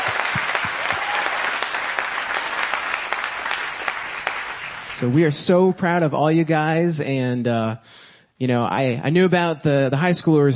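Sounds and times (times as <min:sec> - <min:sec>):
audience applause for graduates: 0:00.0 - 0:05.2
speech: 0:05.0 - 0:10.5.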